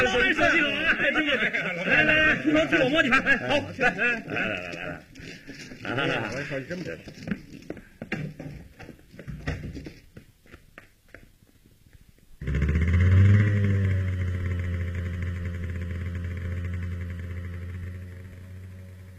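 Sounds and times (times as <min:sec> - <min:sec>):
laughter: 0:00.0 - 0:05.1
speech: 0:00.0 - 0:07.4
motorcycle riding away at night: 0:12.4 - 0:19.1.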